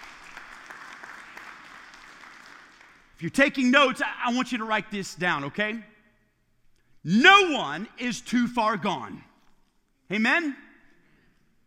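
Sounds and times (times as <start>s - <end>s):
audience applause: 0.0s - 3.0s
speech: 3.2s - 5.9s, 7.0s - 9.3s, 10.1s - 10.6s.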